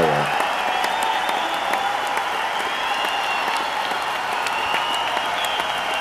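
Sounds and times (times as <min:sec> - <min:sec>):
applause sound effect from button: 0:00.0 - 0:06.0.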